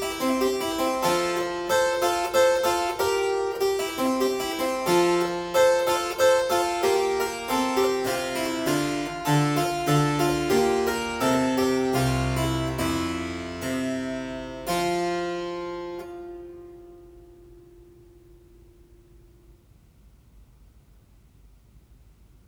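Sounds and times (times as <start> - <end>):
minuet in F: 0.0 - 17.5.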